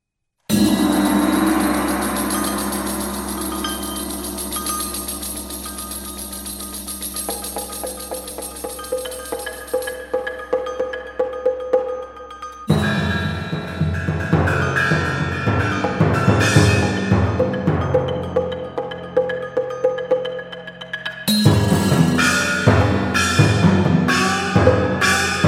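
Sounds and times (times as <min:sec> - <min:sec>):
percussion: 0:00.5 - 0:25.4.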